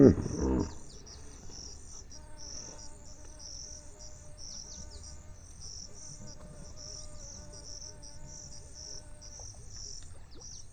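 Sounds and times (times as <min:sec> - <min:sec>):
hippopotamus giving deep loud honking grunts and nasal notes: 0:00.0 - 0:01.0.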